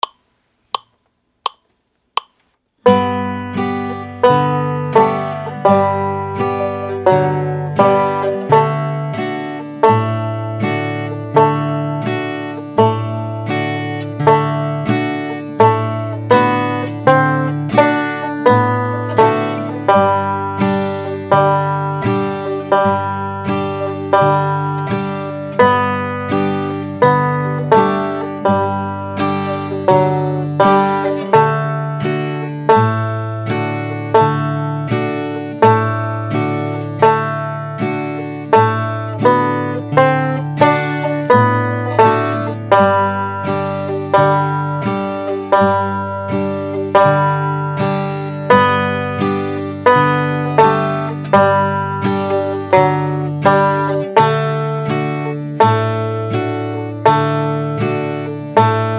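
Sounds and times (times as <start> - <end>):
blues music: 2.8 - 58.9.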